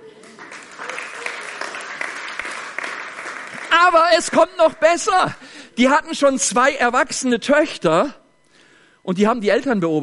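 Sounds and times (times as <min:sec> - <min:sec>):
crowd applause: 0:00.0 - 0:04.6
speech: 0:03.8 - 0:08.2, 0:09.0 - 0:10.0.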